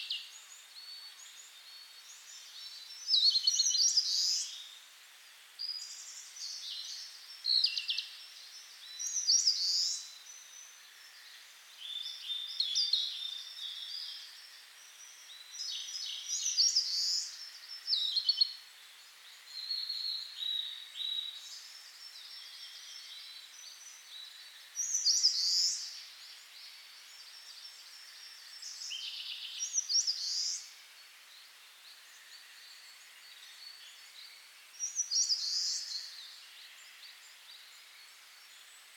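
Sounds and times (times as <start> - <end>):
birds in Karuizawa: 0.0 - 38.9.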